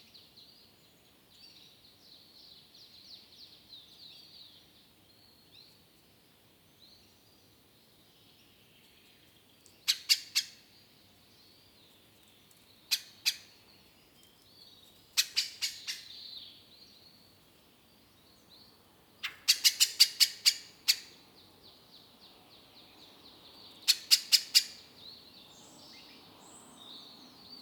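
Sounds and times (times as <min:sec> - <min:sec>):
birds in woodland: 0:00.0 - 0:27.6.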